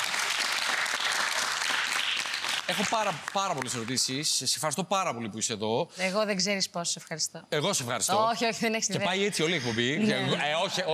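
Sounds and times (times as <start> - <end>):
applause for a singer: 0.0 - 4.2
speech: 2.7 - 10.9.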